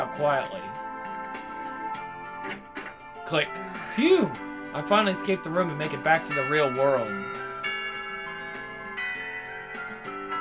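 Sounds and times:
speech: 0:00.1 - 0:00.9, 0:03.3 - 0:07.4
school chimes marking end of classes echoing through hallways: 0:05.8 - 0:10.4.

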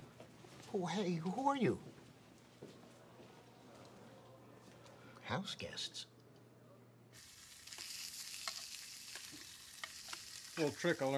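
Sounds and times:
speech: 0:00.7 - 0:02.0, 0:05.3 - 0:06.1, 0:10.6 - 0:11.1
bologna frying in a pan: 0:07.2 - 0:11.1.

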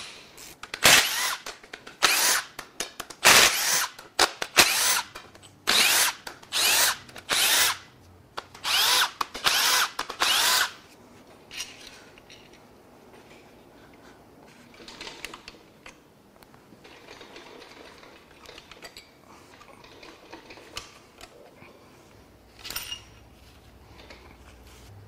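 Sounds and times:
power tool unbolting control shaft caps: 0:00.9 - 0:02.5, 0:03.3 - 0:04.0, 0:04.6 - 0:05.1, 0:05.7 - 0:07.9, 0:08.6 - 0:10.8.

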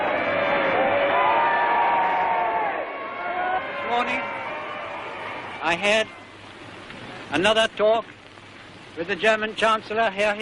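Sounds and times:
large crowd cheering and shouting: 0:00.0 - 0:06.4
speech: 0:04.0 - 0:04.4, 0:05.6 - 0:06.2, 0:07.3 - 0:08.1, 0:09.0 - 0:10.4.

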